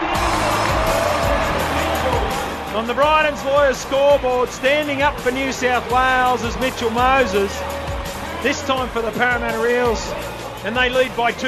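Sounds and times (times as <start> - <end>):
stadium crowd cheering after a kick: 0.0 - 11.4
speech: 2.8 - 7.8, 8.4 - 11.4.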